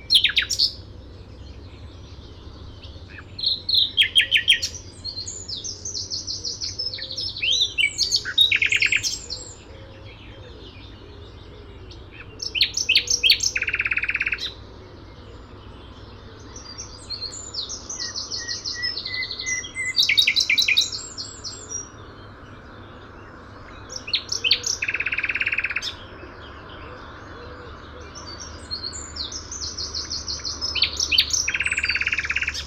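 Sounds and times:
common nightingale singing: 0.0s - 32.6s.

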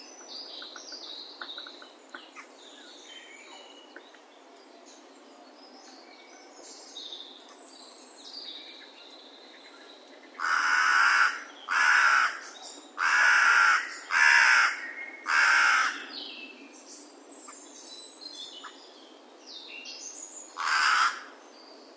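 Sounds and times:
carrion crow cawing coarsely: 10.4s - 12.4s, 13.0s - 16.0s, 20.6s - 21.3s.

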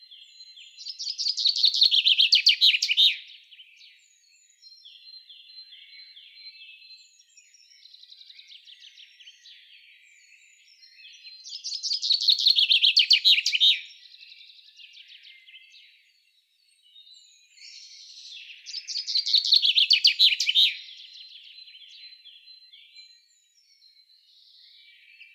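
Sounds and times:
common chaffinch Fringilla coelebs singing: 0.8s - 3.3s, 11.5s - 14.0s, 17.6s - 22.1s.

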